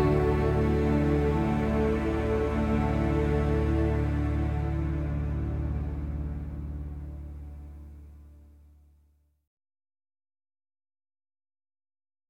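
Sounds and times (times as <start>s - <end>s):
documentary background music: 0.0s - 8.7s.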